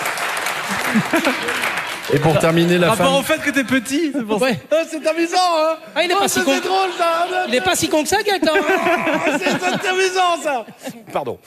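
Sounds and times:
audience applause: 0:00.0 - 0:04.0
laughter: 0:00.6 - 0:11.4
speech: 0:00.7 - 0:11.4.

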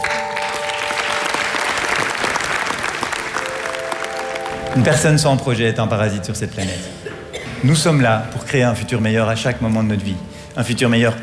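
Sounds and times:
audience applause: 0:00.0 - 0:05.3
speech: 0:04.8 - 0:07.0, 0:07.6 - 0:11.2.

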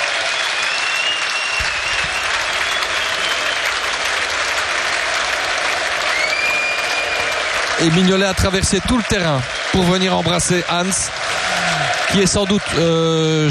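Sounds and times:
large stadium crowd cheering and applauding: 0:00.0 - 0:13.4
whistles: 0:00.2 - 0:03.8, 0:06.1 - 0:07.6
speech: 0:07.8 - 0:11.5, 0:12.1 - 0:13.4.

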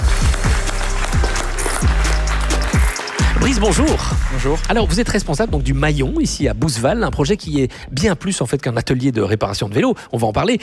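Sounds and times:
audience applause: 0:00.0 - 0:05.0
speech: 0:03.5 - 0:10.6.

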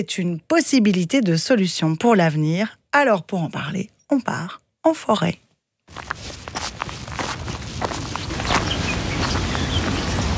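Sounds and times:
speech: 0:00.0 - 0:06.4
footsteps crunching on dry leaves: 0:05.9 - 0:10.3
birds singing: 0:08.2 - 0:10.3.

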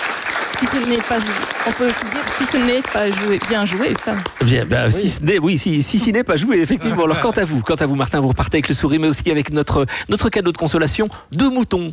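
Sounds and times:
audience applause: 0:00.0 - 0:05.0
speech: 0:00.6 - 0:11.9
laughter: 0:06.5 - 0:07.6.

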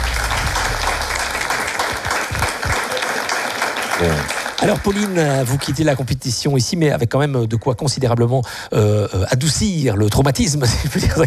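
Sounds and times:
crowd applause: 0:00.0 - 0:06.0
speech: 0:04.0 - 0:11.2.

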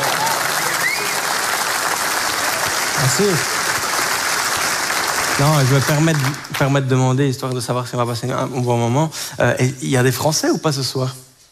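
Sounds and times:
audience applause at a comedy show in Belgium: 0:00.0 - 0:07.0
speech: 0:03.0 - 0:03.6, 0:05.4 - 0:11.3.

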